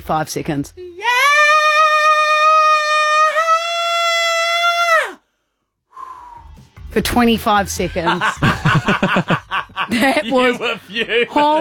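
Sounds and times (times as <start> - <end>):
speech: 0.0 - 0.8, 6.9 - 11.5
person imitating Chewbacca from Star Wars with a growling howl: 1.0 - 5.2
laughter: 7.9 - 11.5.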